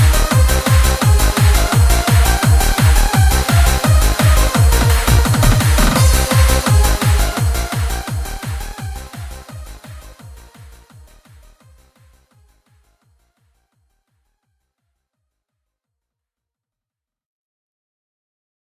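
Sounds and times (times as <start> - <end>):
UK hardcore music: 0.0 - 12.7.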